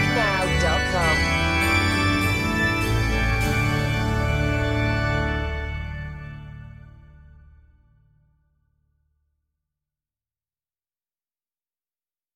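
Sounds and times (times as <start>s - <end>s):
bells: 0.0s - 6.2s
keyboards: 0.0s - 7.4s
organ: 0.0s - 7.8s.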